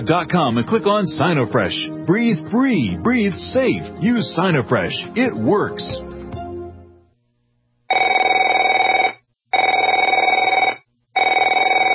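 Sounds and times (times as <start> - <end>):
speech: 0.0 - 6.1
telephone ringing: 7.9 - 11.9.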